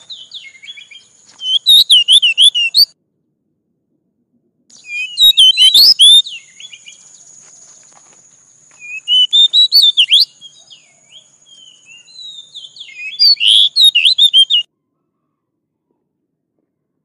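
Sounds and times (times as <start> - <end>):
Oriental magpie-robin singing: 0.0 - 2.9, 4.8 - 7.3, 8.7 - 14.7.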